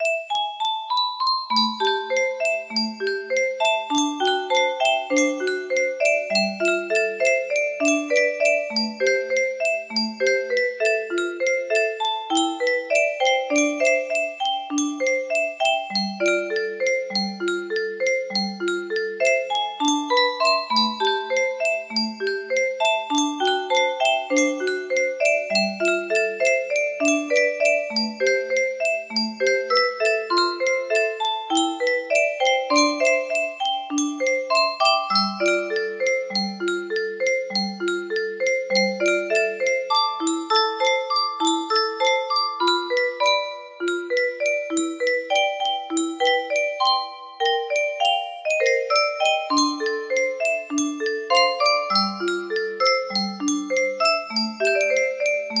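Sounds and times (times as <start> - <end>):
music box: 0.0 - 55.5.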